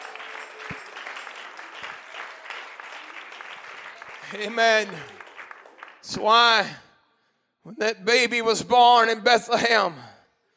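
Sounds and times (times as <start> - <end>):
crowd clapping: 0.0 - 6.7
speech: 4.3 - 5.2, 6.1 - 6.8, 7.6 - 10.1.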